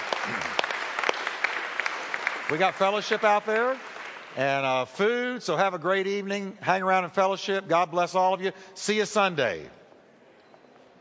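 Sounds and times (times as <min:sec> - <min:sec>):
audience applauding: 0:00.0 - 0:04.8
speech: 0:02.5 - 0:09.8.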